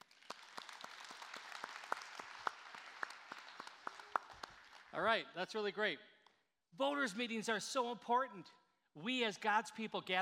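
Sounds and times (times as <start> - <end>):
church audience applauding in a reverberant room: 0.0 - 5.1
speech: 5.0 - 6.1, 6.7 - 10.2.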